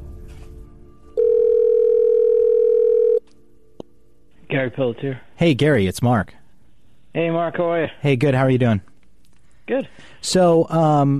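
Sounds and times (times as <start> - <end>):
telephone dial tone: 1.2 - 3.2
speech: 4.6 - 6.4, 7.1 - 8.9, 9.7 - 11.1.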